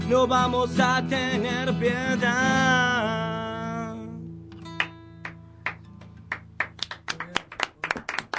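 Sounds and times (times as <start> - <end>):
speech: 0.3 - 3.2
scattered late audience hand claps: 4.6 - 8.3.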